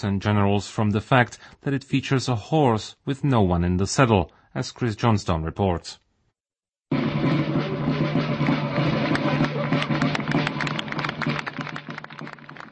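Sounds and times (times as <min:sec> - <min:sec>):
speech: 0:00.0 - 0:06.0
drumbeat from soldiers in Napoleonic uniforms: 0:06.9 - 0:12.7
scattered applause: 0:07.6 - 0:12.7.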